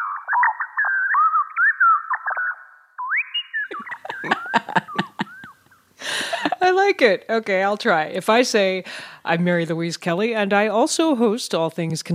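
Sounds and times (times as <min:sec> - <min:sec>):
synthetic birdsong made from speech: 0:00.0 - 0:05.9
laughter: 0:03.7 - 0:06.6
speech: 0:06.9 - 0:12.1.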